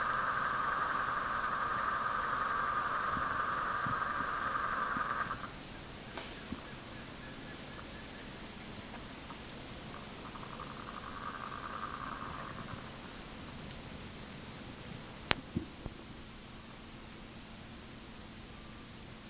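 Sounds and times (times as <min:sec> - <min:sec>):
bird: 0:00.0 - 0:13.2, 0:15.6 - 0:16.1.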